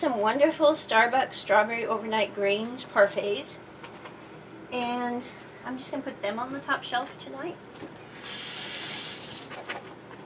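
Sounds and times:
speech: 0.0 - 3.7, 4.7 - 8.4
warm tap water running over groceries being rinsed: 8.2 - 9.5.

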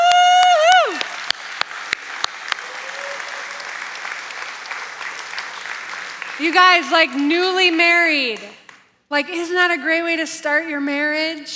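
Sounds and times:
audience applause and cheering: 0.0 - 7.8
speech: 6.4 - 11.5.

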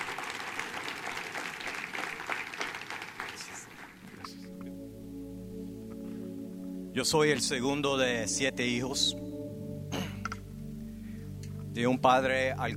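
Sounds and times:
church audience applauding a guest speaker: 0.0 - 4.4
speech: 7.0 - 9.3, 11.8 - 12.7.

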